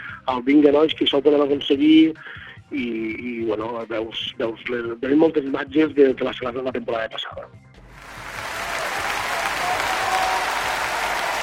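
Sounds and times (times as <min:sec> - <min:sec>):
speech: 0:00.3 - 0:07.6
applause: 0:07.9 - 0:11.4.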